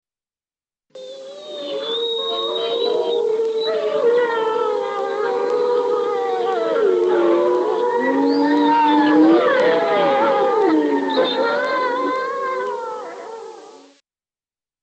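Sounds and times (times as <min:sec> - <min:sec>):
grey wolves howling: 0:01.0 - 0:14.0.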